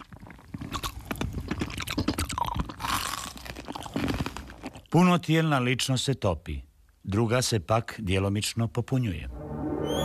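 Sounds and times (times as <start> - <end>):
chewing ice cubes: 0.0 - 5.0
speech: 4.9 - 9.4.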